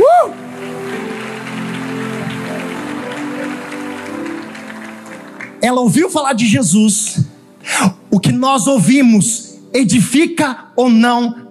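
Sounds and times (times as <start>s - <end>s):
audience applauding: 0.0s - 6.1s
speech: 5.6s - 11.4s.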